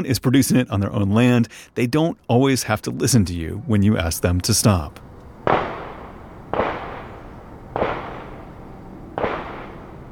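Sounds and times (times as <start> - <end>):
speech: 0.0 - 5.7
gunshots from a shooting range beyond a fence line in a residential neighborhood: 5.4 - 10.0.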